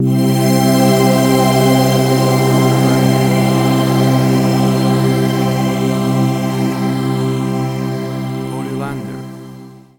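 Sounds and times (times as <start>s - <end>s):
dreamy atmospheric music stinger: 0.0s - 9.8s.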